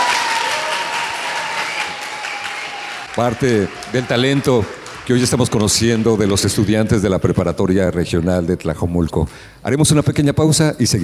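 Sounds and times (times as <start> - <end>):
audience applause: 0.0 - 7.0
speech: 3.2 - 11.0.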